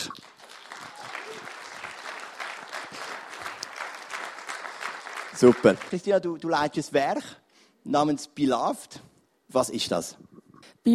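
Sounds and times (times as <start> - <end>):
audience applause: 0.0 - 6.4
speech: 5.4 - 10.9.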